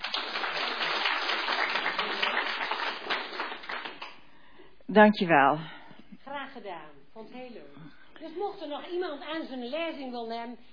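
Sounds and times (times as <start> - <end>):
audience applause: 0.0 - 4.2
speech: 4.9 - 5.8, 6.6 - 10.7.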